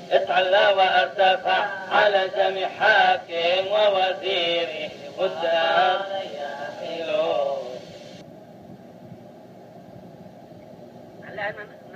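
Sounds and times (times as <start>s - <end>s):
Arabic-style prayer melody: 0.1s - 7.8s.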